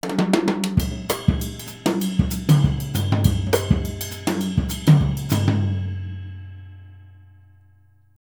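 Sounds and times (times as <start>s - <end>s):
jazz music: 0.8s - 7.0s.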